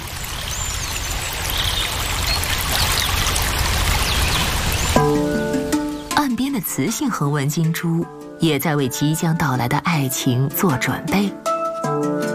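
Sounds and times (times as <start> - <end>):
babbling stream water flowing beside a lavender field: 0.0 - 7.9
speech: 5.0 - 5.4, 6.6 - 12.2.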